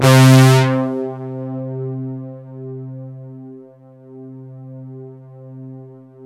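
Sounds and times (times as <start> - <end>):
Roland JV-1080 polybrass synth: 0.0 - 2.7.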